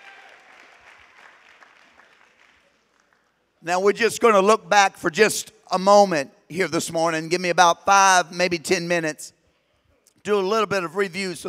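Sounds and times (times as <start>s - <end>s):
audience clapping: 0.0s - 3.6s
speech: 3.6s - 9.4s, 10.2s - 11.4s.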